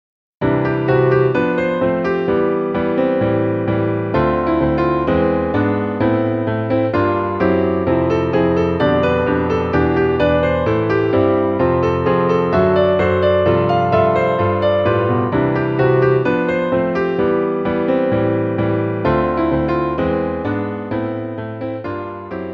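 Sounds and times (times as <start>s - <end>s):
piano: 0.4s - 22.5s.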